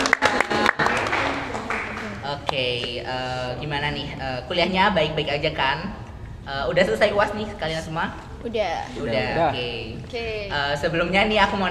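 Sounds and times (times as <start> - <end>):
applause: 0.0 - 2.2
speech: 2.5 - 11.6.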